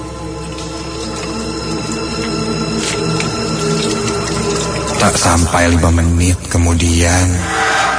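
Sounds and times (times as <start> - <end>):
washing dishes under running tap water: 0.0 - 6.4
speech: 5.0 - 7.8.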